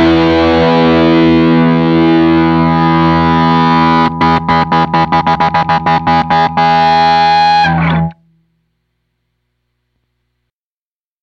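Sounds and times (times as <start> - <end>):
Marshall guitar amplifier tone: 0.0 - 8.7.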